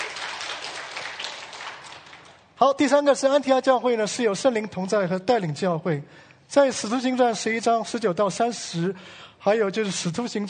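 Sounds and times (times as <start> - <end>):
church congregation applause for young fellowship members: 0.0 - 2.5
speech: 2.6 - 10.4.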